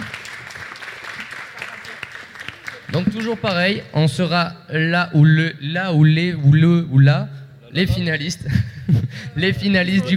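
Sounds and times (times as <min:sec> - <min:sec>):
audience clapping after a startup pitch at a digital technology event: 0:00.0 - 0:03.7
speech: 0:02.9 - 0:10.1
laughter: 0:08.4 - 0:10.1.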